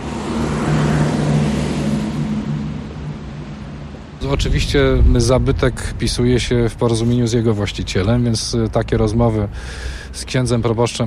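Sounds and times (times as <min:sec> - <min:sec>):
busy street traffic outside a church: 0:00.0 - 0:04.3, 0:07.1 - 0:11.0
speech: 0:04.3 - 0:11.0.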